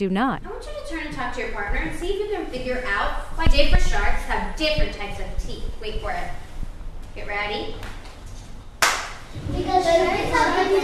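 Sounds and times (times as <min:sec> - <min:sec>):
speech: 0:00.0 - 0:06.4, 0:07.2 - 0:08.0, 0:09.4 - 0:10.8
teacher clapping her hands: 0:08.8 - 0:09.2
children chattering: 0:09.5 - 0:10.8.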